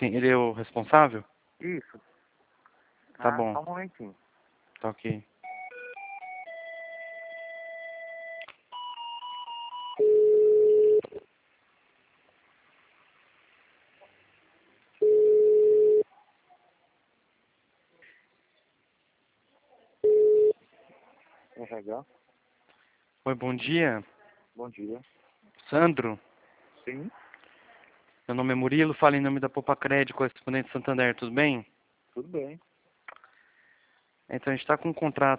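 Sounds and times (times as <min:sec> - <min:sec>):
speech: 0:00.0 - 0:02.1, 0:03.2 - 0:04.2, 0:04.8 - 0:05.3, 0:21.7 - 0:22.2, 0:23.2 - 0:26.3, 0:26.9 - 0:27.2, 0:28.3 - 0:32.7, 0:34.3 - 0:35.3
electronic telephone tones as a call is transferred: 0:05.4 - 0:11.2, 0:15.0 - 0:16.0, 0:20.0 - 0:20.6.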